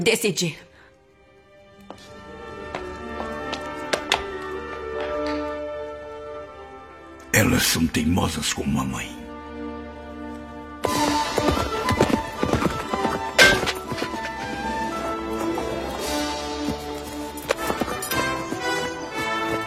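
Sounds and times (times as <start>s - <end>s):
speech: 0.0s - 0.7s, 7.4s - 9.2s
horse hooves clopping while someone rides in a dubbed film: 2.0s - 5.4s, 10.8s - 19.6s.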